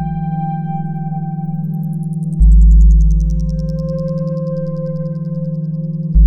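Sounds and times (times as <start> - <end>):
music loop: 1.5 - 6.1.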